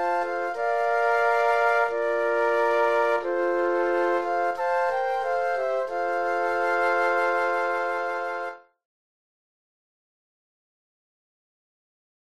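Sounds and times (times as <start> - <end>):
flute quartet: 0.0 - 8.7.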